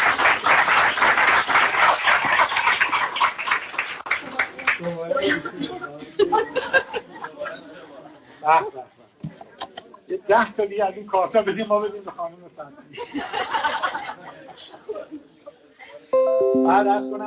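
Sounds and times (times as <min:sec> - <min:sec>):
audience applause at a community association gathering: 0:00.0 - 0:04.8
chatter and chuckles: 0:05.0 - 0:08.3, 0:12.7 - 0:16.1
speech: 0:08.4 - 0:08.9, 0:10.3 - 0:15.2, 0:16.2 - 0:17.2.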